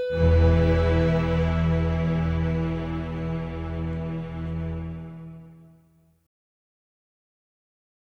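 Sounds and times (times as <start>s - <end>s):
old time banjo playing: 0.1s - 5.5s.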